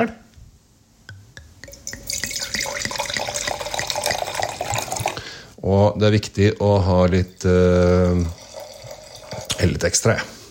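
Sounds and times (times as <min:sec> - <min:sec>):
speech: 0:00.0 - 0:00.2, 0:05.7 - 0:08.4, 0:09.6 - 0:10.4
wine being poured into a glass: 0:01.6 - 0:05.3, 0:07.1 - 0:10.0.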